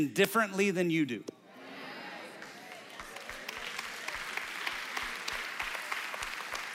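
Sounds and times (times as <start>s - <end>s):
speech: 0.0s - 1.4s
audience clapping: 2.2s - 6.7s.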